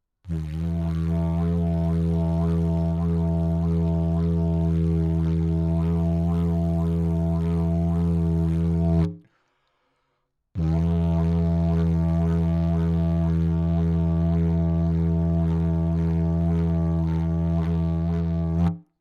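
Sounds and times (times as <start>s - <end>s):
didgeridoo: 0.3s - 9.1s, 10.6s - 18.8s.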